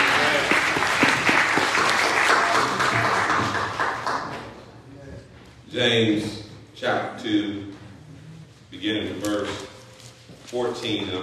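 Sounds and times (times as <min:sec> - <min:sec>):
audience applause: 0:00.0 - 0:04.5
speech: 0:05.8 - 0:07.6, 0:10.5 - 0:11.2.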